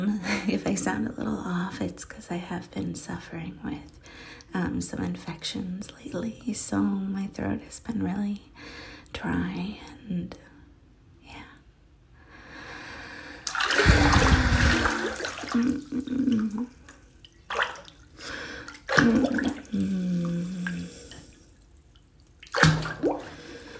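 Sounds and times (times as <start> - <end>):
speech: 0.5 - 10.5, 15.5 - 16.8, 19.0 - 20.5
warm shower water running: 13.5 - 23.7.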